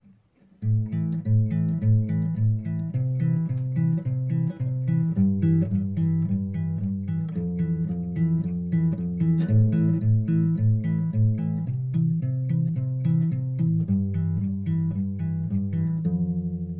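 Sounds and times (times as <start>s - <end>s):
guitar: 0.0s - 16.7s.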